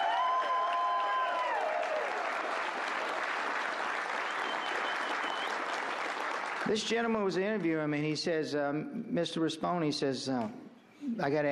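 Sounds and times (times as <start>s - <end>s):
audience applause: 0.0s - 7.2s
speech: 6.7s - 10.6s, 11.2s - 11.4s.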